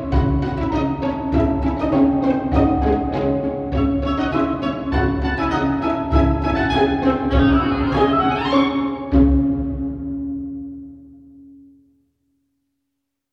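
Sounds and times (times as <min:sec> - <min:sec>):
oboe: 0:00.0 - 0:09.5.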